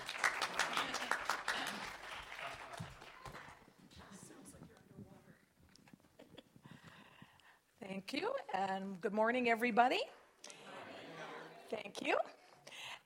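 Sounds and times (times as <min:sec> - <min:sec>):
audience applause: 0:00.0 - 0:03.7
speech: 0:08.0 - 0:10.2, 0:11.8 - 0:12.4.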